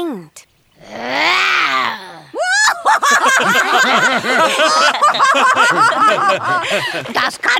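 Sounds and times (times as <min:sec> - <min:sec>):
voice imitating a lion's roar: 0:00.8 - 0:02.4
laughter: 0:01.7 - 0:07.5.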